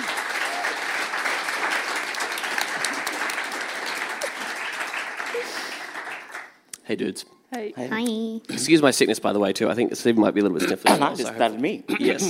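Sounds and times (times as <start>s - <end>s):
audience applause welcoming the panel onto the stage: 0.0s - 6.6s
speech: 6.9s - 12.2s.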